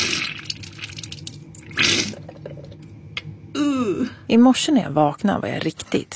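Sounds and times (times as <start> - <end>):
nasal rinse squirting saltwater into nostril: 0.0 - 2.8
water drips and splashes into a sink: 0.0 - 3.3
speech: 3.8 - 6.1.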